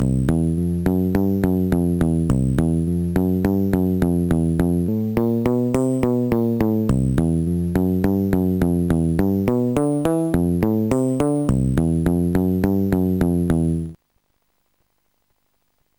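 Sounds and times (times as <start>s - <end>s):
blues bass: 0.0s - 14.0s.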